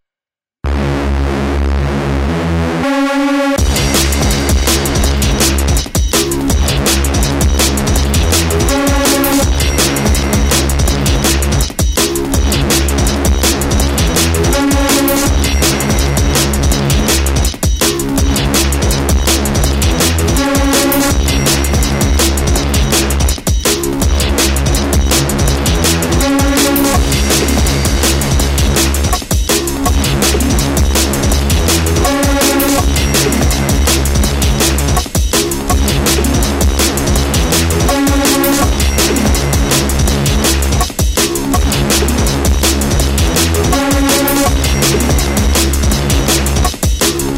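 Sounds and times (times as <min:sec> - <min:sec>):
fight music track: 0:00.7 - 0:47.3.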